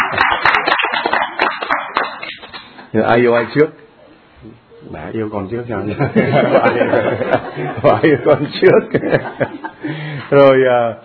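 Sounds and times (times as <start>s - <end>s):
group clapping for a couple's 21st wedding anniversary: 0.0s - 2.9s
speech: 2.9s - 3.8s, 4.4s - 11.0s
laughter: 5.9s - 10.3s.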